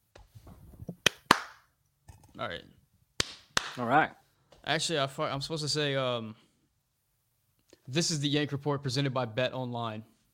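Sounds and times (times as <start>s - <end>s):
hand claps: 0.9s - 1.7s, 3.2s - 3.9s
speech: 2.4s - 2.8s, 3.8s - 6.4s, 7.9s - 10.1s.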